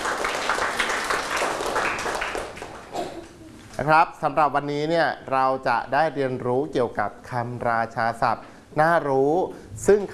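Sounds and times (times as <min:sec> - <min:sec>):
class of students applauding themselves: 0:00.0 - 0:03.4
speech: 0:03.8 - 0:10.1.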